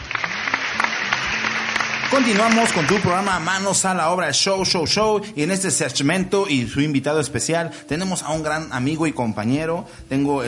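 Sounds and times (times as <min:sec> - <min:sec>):
audience applause: 0:00.0 - 0:03.9
speech: 0:02.1 - 0:10.4.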